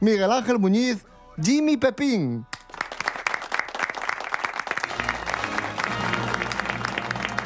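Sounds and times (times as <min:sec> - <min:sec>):
speech: 0:00.0 - 0:02.5
studio audience applause, sustained ovation: 0:02.8 - 0:07.4.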